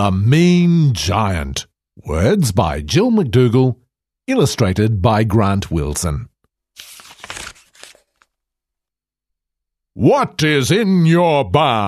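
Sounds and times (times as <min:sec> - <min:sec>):
speech: 0:00.0 - 0:06.3, 0:10.0 - 0:11.8
book page being turned: 0:06.8 - 0:08.4.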